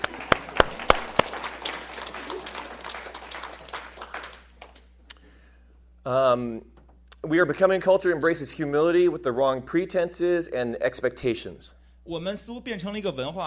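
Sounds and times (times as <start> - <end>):
audience applause: 0.0 - 4.8
speech: 6.0 - 13.4.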